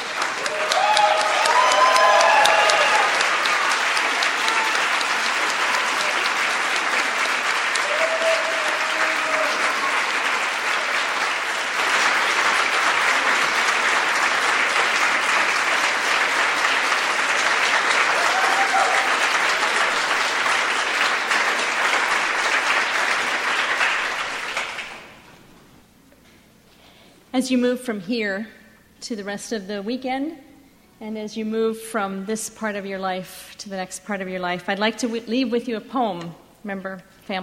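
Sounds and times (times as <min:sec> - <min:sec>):
faint cheers and voices: 0:00.0 - 0:11.2, 0:18.0 - 0:19.8
standing ovation applause from large audience: 0:00.0 - 0:25.4
speech: 0:27.4 - 0:37.4.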